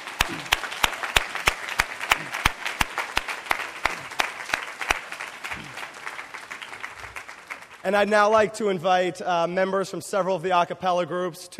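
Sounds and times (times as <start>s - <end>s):
audience applause: 0.0s - 7.9s
speech: 0.3s - 0.5s, 7.8s - 11.5s.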